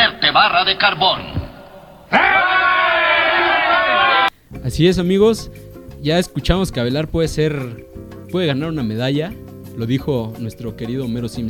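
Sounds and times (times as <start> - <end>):
speech: 0.4 - 1.3, 2.1 - 2.6, 4.7 - 11.4
crowd cheering: 1.6 - 4.3
crowd applause: 2.1 - 4.3.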